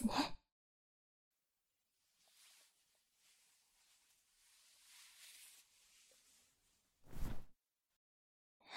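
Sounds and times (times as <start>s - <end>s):
relaxed ear cleaning with incense: 2.1s - 7.3s.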